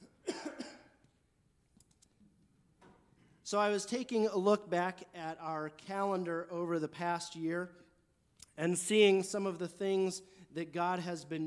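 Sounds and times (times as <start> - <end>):
man clearing throat while leading a morning church service: 0.0 - 1.0
speech: 3.5 - 7.8, 8.6 - 11.4.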